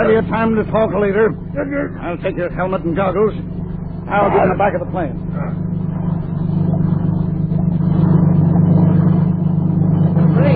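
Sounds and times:
speech: 0.0 - 5.7
motorboat approaching alongside: 0.0 - 10.5.

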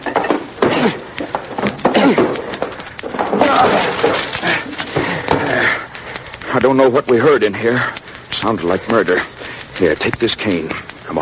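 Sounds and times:
locked door being broken in: 0.0 - 5.4
speech: 0.8 - 1.0, 6.6 - 11.2.

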